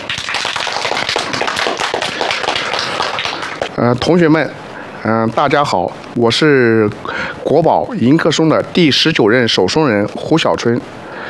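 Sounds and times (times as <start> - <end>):
large crowd applause: 0.0 - 3.7
speech: 3.8 - 11.0.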